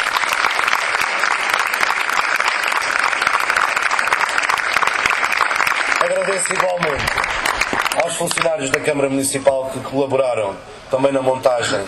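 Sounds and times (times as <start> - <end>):
audience applause: 0.0 - 8.9
speech: 6.1 - 11.8.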